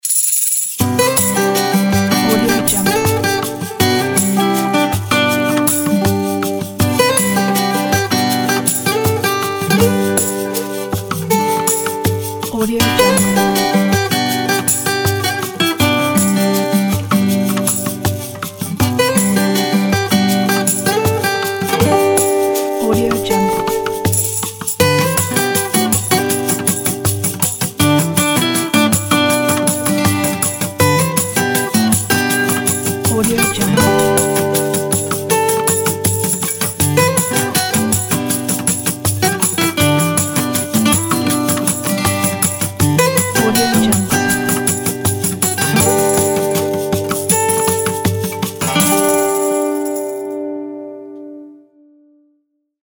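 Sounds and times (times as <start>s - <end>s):
tender acoustic inspiring intro music: 0.8s - 51.8s.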